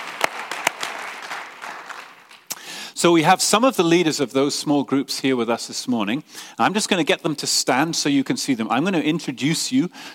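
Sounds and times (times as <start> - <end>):
audience clapping: 0.0 - 2.7
speech: 3.0 - 10.1.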